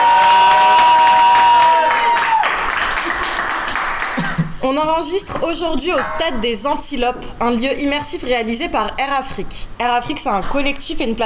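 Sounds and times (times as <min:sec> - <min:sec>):
live studio audience cheering at Stade des Antilopes: 0:00.0 - 0:03.8
speech: 0:04.7 - 0:11.2.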